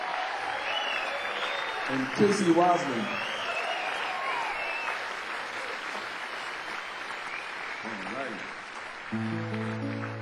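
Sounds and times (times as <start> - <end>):
crowd applause: 0.0 - 10.2
faint whistles: 0.6 - 1.9, 3.0 - 5.0
speech: 1.9 - 3.4, 9.1 - 9.7.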